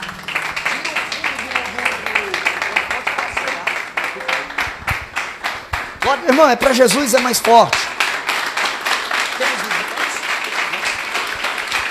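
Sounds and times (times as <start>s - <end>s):
crowd clapping in a brisk, even rhythm: 0.0s - 11.9s
speech: 6.1s - 7.9s, 9.4s - 9.7s.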